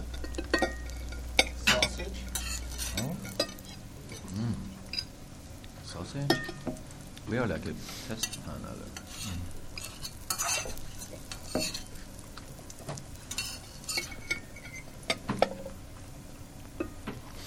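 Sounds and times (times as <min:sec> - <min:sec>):
utensil scraping and clinking against the pan: 0:00.0 - 0:05.1, 0:07.7 - 0:15.8
fake sausage frying in a pan: 0:00.0 - 0:17.4
speech: 0:06.0 - 0:06.6, 0:07.3 - 0:09.6.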